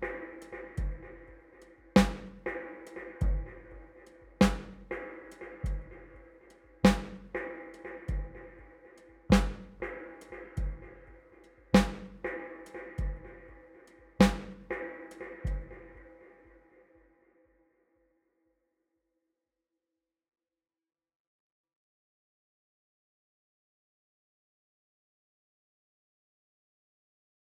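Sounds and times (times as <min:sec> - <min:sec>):
drum: 0:00.0 - 0:08.7, 0:09.3 - 0:13.6, 0:14.2 - 0:16.0.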